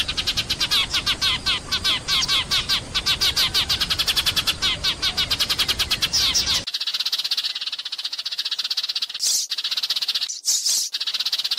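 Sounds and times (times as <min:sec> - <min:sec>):
sparrow chattering rattle: 0:00.0 - 0:11.5.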